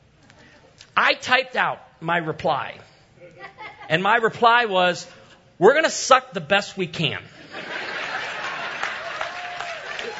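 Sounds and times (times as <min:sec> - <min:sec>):
speech: 0:01.0 - 0:07.5
laughter: 0:03.2 - 0:04.0, 0:07.4 - 0:10.1
scattered audience clapping: 0:08.2 - 0:10.1.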